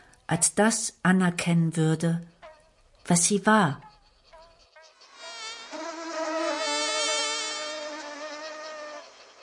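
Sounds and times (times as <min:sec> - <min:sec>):
speech: 0:00.3 - 0:02.3, 0:03.1 - 0:03.9
giant red crane fly buzzing: 0:03.8 - 0:09.4.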